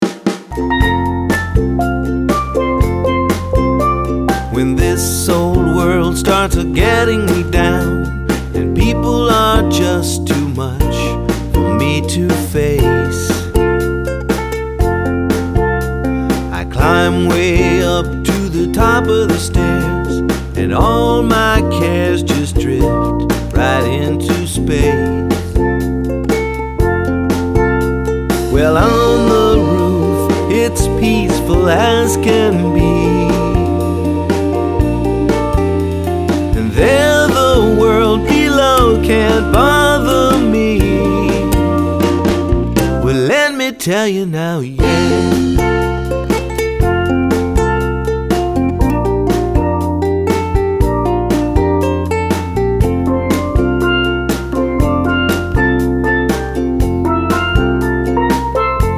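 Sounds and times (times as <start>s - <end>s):
Caribbean band playing: 0.0s - 43.7s, 44.8s - 58.9s.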